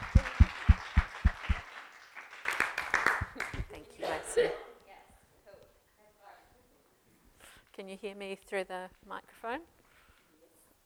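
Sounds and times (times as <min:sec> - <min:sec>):
audience round of applause: 0:00.0 - 0:03.7
speech: 0:07.9 - 0:09.8.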